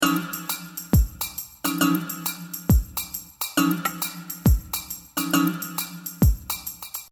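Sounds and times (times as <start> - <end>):
music loop: 0.0 - 7.1.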